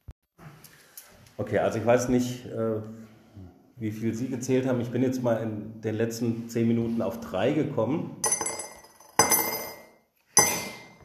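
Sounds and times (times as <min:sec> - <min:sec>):
speech: 0:01.4 - 0:03.1, 0:03.8 - 0:08.3
coins clinking into a cash box: 0:08.2 - 0:09.8.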